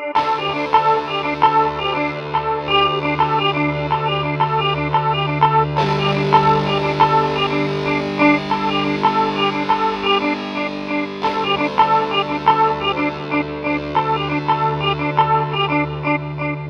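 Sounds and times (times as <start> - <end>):
rock band playing: 0.2 - 16.6.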